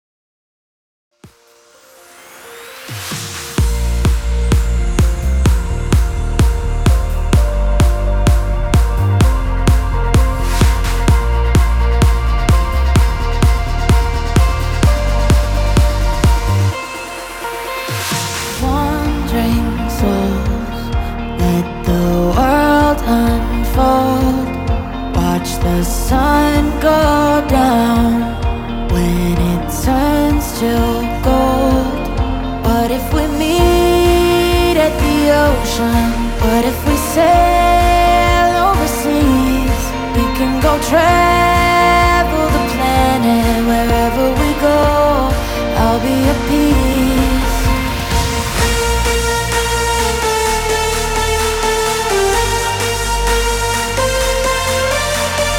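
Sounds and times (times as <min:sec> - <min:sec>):
progressive dance music: 0:01.2 - 0:55.5.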